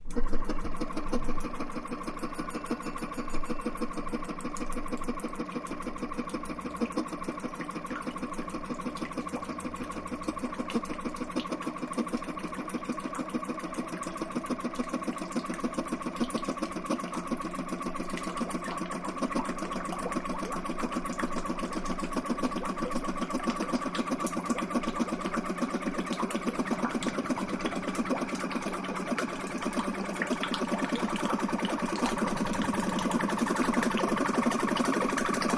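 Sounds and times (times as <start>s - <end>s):
dental water pic pumping watery machine: 0.0s - 35.5s.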